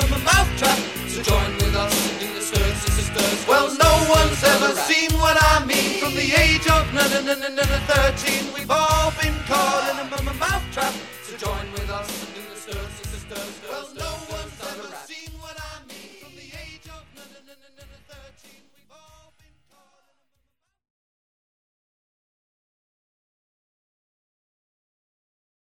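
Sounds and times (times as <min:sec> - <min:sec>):
stuttering rap: 0:00.0 - 0:20.3.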